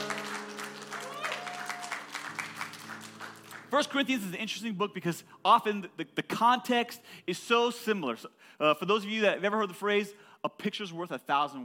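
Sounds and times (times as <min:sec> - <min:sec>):
audience clapping: 0:00.0 - 0:04.3
speech: 0:03.7 - 0:11.6.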